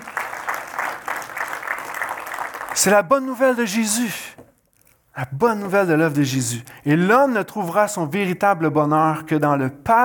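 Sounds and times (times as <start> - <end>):
audience applause: 0.0 - 2.9
speech: 2.8 - 4.4, 5.2 - 10.0.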